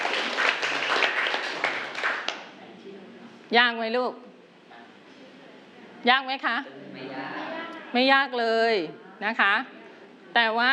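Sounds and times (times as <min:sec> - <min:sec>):
hands clapping: 0:00.0 - 0:02.6
speech: 0:03.5 - 0:04.3, 0:06.0 - 0:06.9, 0:07.9 - 0:10.7.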